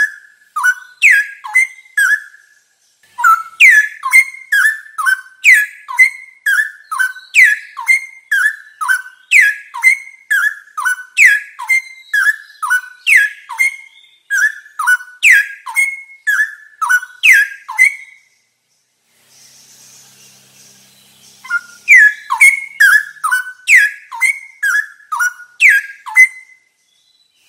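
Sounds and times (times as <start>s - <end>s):
straw-headed bulbul singing: 0.0s - 27.4s.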